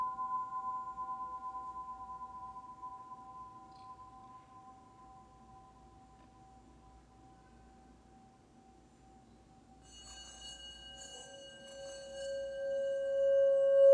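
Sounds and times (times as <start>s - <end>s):
healing bowls ringing: 0.0s - 13.9s.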